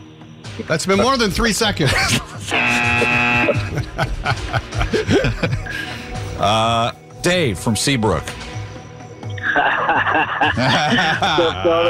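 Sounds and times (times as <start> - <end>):
speech: 0.6 - 8.4, 9.6 - 11.8
people chuckling and laughing: 1.8 - 6.2, 9.4 - 11.8
harsh steady quiz buzzer: 2.4 - 3.7.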